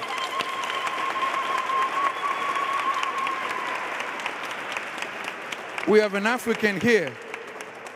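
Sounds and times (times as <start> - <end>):
audience clapping hands: 0.0 - 7.9
speech: 5.8 - 7.2.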